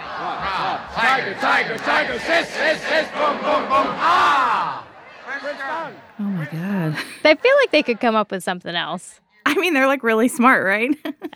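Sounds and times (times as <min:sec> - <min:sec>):
crowd chanting a cheer: 0:00.0 - 0:06.2
speech: 0:00.9 - 0:11.3.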